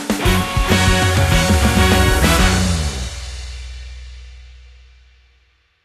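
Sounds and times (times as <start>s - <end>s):
victory jingle in 4-4 time: 0.2s - 3.3s.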